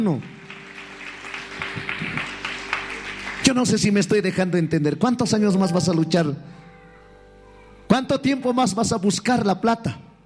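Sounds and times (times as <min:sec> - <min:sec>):
speech: 0:00.0 - 0:00.3, 0:03.5 - 0:06.7, 0:07.9 - 0:10.0
audience applauding: 0:00.0 - 0:04.4.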